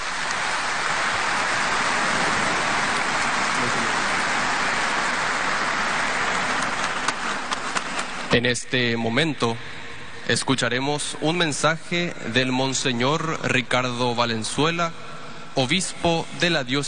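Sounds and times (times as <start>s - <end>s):
crowd applauding: 0.0s - 8.3s
speech: 8.4s - 16.8s.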